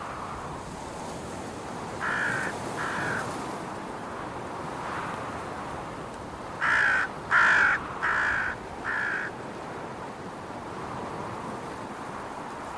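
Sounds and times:
soft windy hiss: 0.0 - 12.7
crows cawing while mobbing an eagle: 2.0 - 3.3, 6.6 - 9.4.

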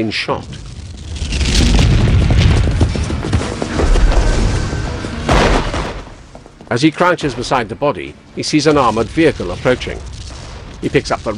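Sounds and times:
speech: 0.0 - 0.7, 6.7 - 10.1, 10.8 - 11.3
crackling debris: 0.0 - 11.3
explosions rocking a building compound: 0.4 - 6.6, 8.8 - 11.3.

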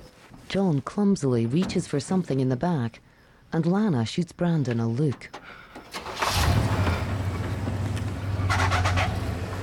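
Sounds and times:
speech: 0.5 - 5.6
car engine rumbling as the car pulls away at night: 5.1 - 9.6.

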